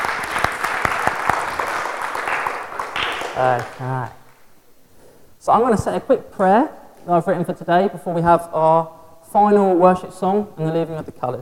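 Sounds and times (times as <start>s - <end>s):
audience applause: 0.0s - 4.1s
speech: 3.4s - 4.2s, 5.4s - 11.4s.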